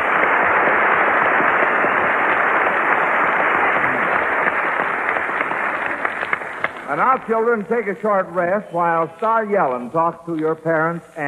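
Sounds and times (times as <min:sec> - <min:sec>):
crowd clapping: 0:00.0 - 0:10.5
speech: 0:07.0 - 0:11.2.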